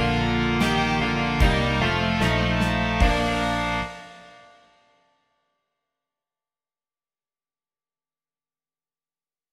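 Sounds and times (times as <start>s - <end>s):
rock music: 0.0s - 4.5s.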